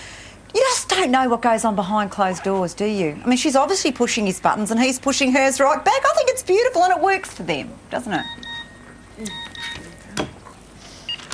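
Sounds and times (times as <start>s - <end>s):
speech: 0.9s - 8.5s, 9.2s - 9.5s
phone text message alert beeps: 8.2s - 9.9s.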